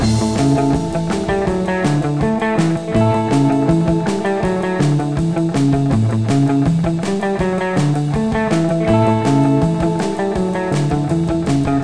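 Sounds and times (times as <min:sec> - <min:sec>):
beach music: 0:00.0 - 0:11.8.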